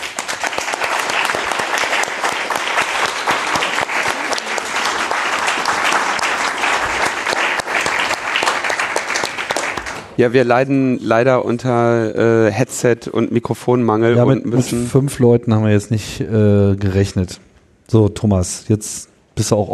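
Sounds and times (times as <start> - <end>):
audience applause: 0.0 - 10.2
speech: 10.2 - 19.7.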